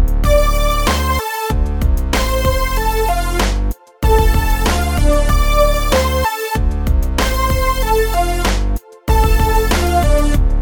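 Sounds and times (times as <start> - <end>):
eighth-note rhythm: 0.2 - 10.6.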